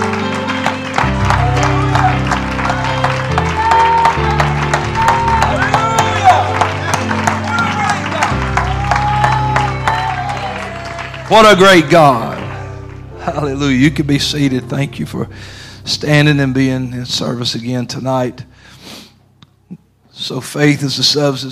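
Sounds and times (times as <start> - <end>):
audience shouting praise: 0.0 - 12.8
audience clapping: 0.0 - 14.5
speech: 11.3 - 12.3, 13.3 - 19.0, 20.2 - 21.5.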